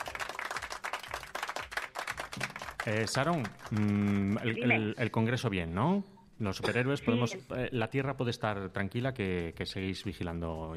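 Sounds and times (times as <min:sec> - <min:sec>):
canned applause sound effect: 0:00.0 - 0:04.7
speech: 0:02.8 - 0:10.7.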